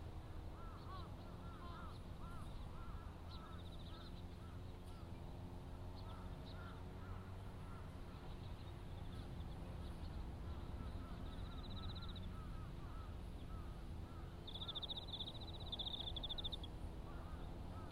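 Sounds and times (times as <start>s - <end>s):
engine drone while grass is cut in a sweet potato field: 0.0s - 17.9s
birds calling: 0.5s - 17.9s.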